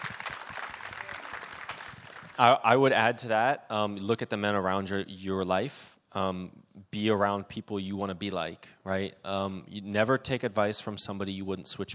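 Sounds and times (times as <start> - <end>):
audience clapping: 0.0 - 2.6
speech: 2.4 - 11.9.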